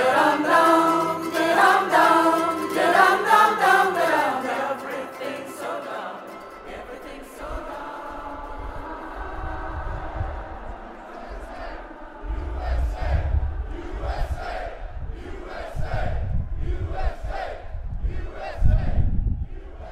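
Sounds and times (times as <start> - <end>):
thousands of armed demonstrators chanting at an anti-gun-control rally in Richmond: 0.0 - 19.9
low rumble: 8.6 - 16.9.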